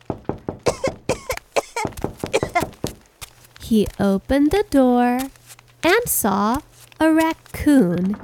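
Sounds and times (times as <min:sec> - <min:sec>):
person coughing: 0:00.7 - 0:02.7
speech: 0:03.7 - 0:08.2.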